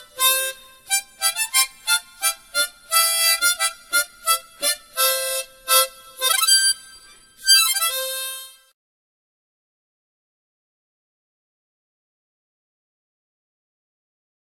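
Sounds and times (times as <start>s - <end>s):
harmonica playing: 0.0s - 8.7s.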